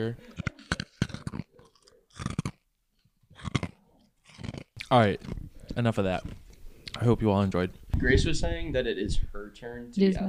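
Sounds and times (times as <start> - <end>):
speech: 0.0 - 0.5, 4.9 - 6.4, 7.0 - 10.2
ice crunched and chewed for ASMR eating: 0.2 - 7.0.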